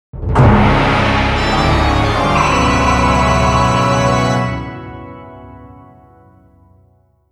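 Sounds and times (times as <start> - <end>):
defeat jingle: 0.4 - 5.5.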